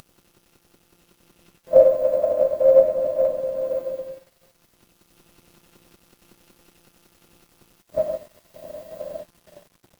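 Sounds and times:
dark horror ambience: 0:01.7 - 0:04.2, 0:08.0 - 0:09.6.

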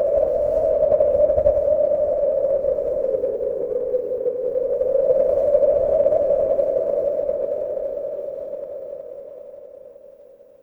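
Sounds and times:
wind: 0:00.0 - 0:10.6.

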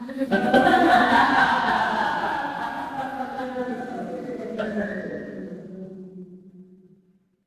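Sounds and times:
crowd laughing: 0:00.0 - 0:04.9.

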